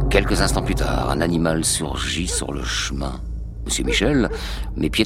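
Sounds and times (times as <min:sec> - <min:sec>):
speech: 0:00.1 - 0:05.0
dog barking: 0:02.3 - 0:02.7, 0:03.7 - 0:04.5.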